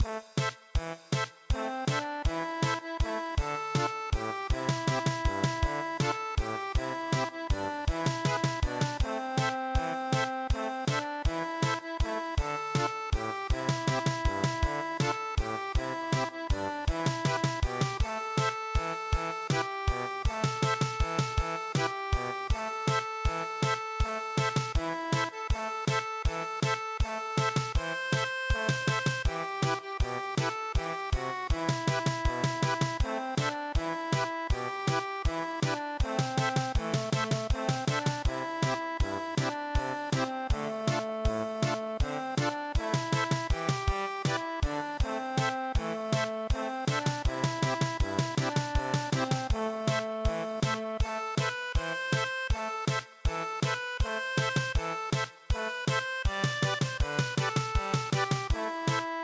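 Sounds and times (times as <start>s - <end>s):
traditional German polka music: 0.0s - 59.2s.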